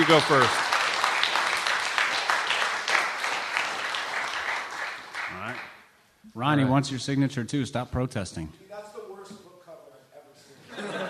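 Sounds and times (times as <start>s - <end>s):
speech: 0.0s - 0.6s, 6.4s - 8.7s
live audience clapping: 0.0s - 5.9s
laughter: 10.6s - 11.0s.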